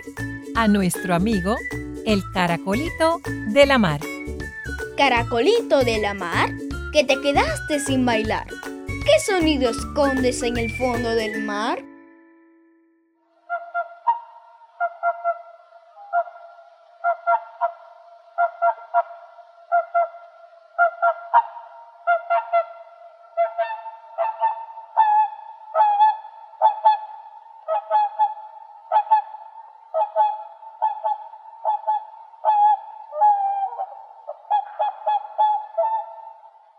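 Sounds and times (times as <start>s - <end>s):
speech: 0.0s - 4.1s, 5.0s - 11.9s
swan calling: 13.5s - 36.6s.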